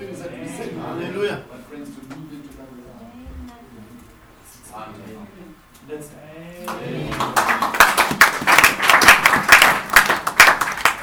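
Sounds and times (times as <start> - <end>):
speech: 0.8 - 1.8
audience clapping: 6.6 - 11.0.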